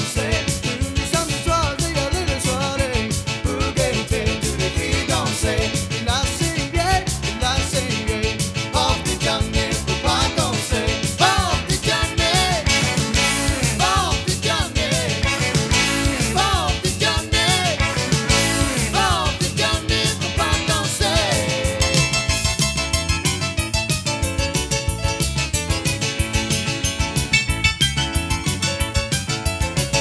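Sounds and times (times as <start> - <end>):
country music: 0.0 - 29.9.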